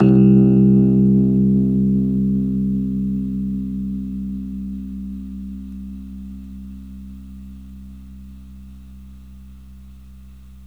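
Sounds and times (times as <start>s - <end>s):
Rhodes electric piano note C: 0.0s - 8.3s.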